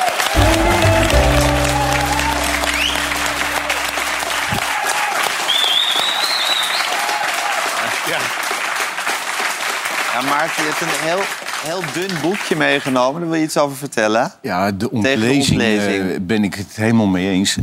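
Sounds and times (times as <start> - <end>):
crowd applause: 0.0 - 5.6, 6.4 - 12.4
crowd cheering: 0.0 - 8.2
low music sting: 0.4 - 4.8
speech: 10.4 - 17.6.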